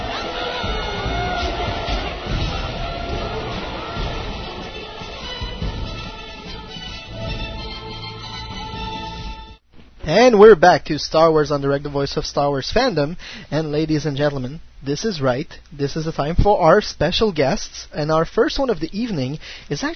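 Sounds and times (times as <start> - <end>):
crowd cheering and shouting: 0.0 - 6.8
speech: 10.1 - 19.9.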